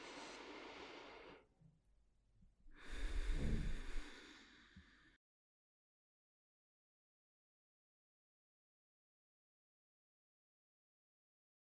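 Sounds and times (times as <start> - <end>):
slow breathing during a guided meditation: 0.0 - 1.5, 2.7 - 5.2.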